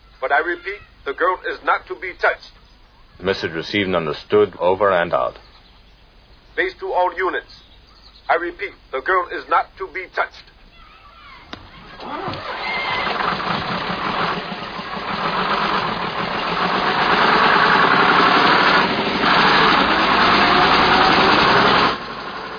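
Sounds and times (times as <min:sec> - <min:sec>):
speech: 0:00.2 - 0:02.6, 0:03.2 - 0:05.5, 0:06.6 - 0:07.6, 0:08.3 - 0:10.5, 0:12.0 - 0:12.6
double-decker bus engine roaring during chase scene: 0:11.6 - 0:22.5.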